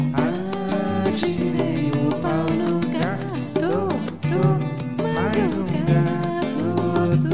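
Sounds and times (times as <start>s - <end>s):
Brazilian children's song: 0.2s - 7.3s.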